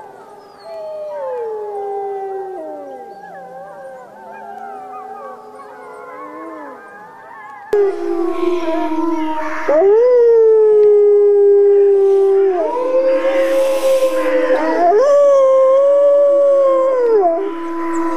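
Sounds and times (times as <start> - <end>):
wolf howling: 0.0 - 18.1.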